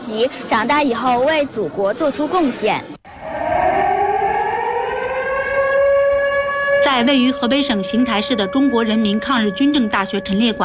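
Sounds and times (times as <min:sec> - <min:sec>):
speech: 0:00.1 - 0:03.0, 0:06.9 - 0:10.6
air raid warning siren: 0:03.0 - 0:10.6.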